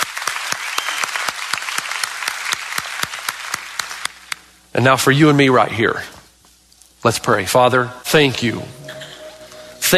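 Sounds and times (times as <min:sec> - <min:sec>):
audience applause: 0:00.0 - 0:04.2
speech: 0:04.8 - 0:06.2, 0:07.0 - 0:08.8.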